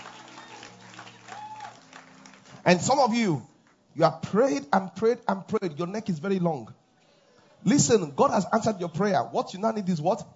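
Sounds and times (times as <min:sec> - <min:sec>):
audience clapping: 0:00.0 - 0:03.8
speech: 0:02.6 - 0:06.8, 0:07.6 - 0:10.3.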